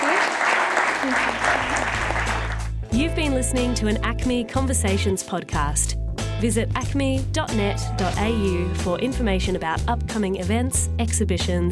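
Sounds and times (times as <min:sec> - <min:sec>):
audience applause: 0:00.0 - 0:02.7
speech: 0:03.0 - 0:11.6.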